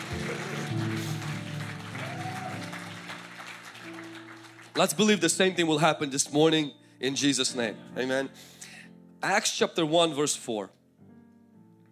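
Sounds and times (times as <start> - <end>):
audience clapping: 0.0 - 5.6
sustained keyboard or organ chords: 0.0 - 9.2
speech: 4.8 - 8.6, 9.2 - 10.8.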